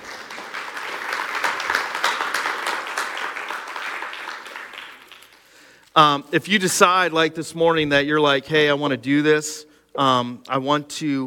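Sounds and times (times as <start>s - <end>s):
clapping: 0.0s - 5.8s
speech: 6.0s - 11.2s.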